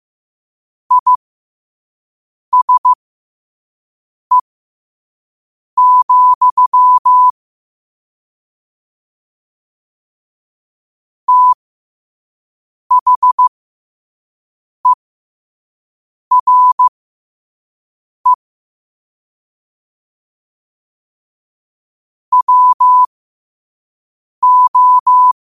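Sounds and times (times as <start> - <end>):
morse code at 5 wpm: 0.9 - 1.2, 2.6 - 3.0, 5.8 - 7.3, 11.3 - 11.6, 12.9 - 13.5, 16.3 - 16.9, 22.3 - 23.1, 24.4 - 25.4.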